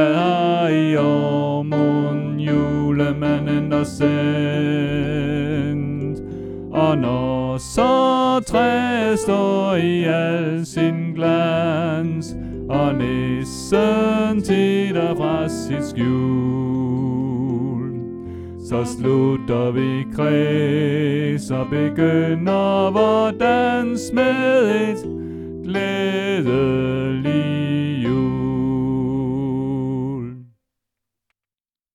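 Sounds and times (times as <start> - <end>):
soprano singing: 0.0 - 30.5.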